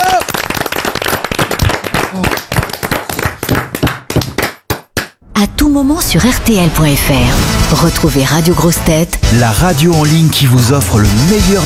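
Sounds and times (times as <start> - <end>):
studio audience applause: 0.0 - 5.2
speech: 2.1 - 2.4, 5.4 - 11.6.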